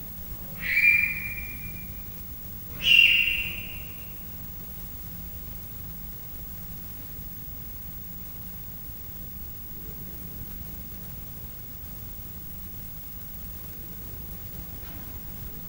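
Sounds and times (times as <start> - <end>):
leopard cub chirps: 0.4 - 2.1, 2.7 - 4.2.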